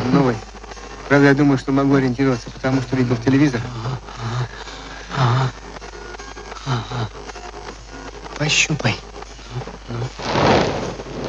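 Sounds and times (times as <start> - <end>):
speech: 0.2 - 4.3, 8.4 - 9.1, 9.9 - 10.7
distant explosions in a mine: 10.2 - 11.2.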